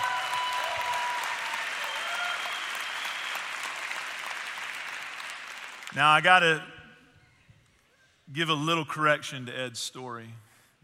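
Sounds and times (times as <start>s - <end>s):
audience round of applause: 0.0s - 6.0s
speech: 5.9s - 6.7s, 8.3s - 10.5s.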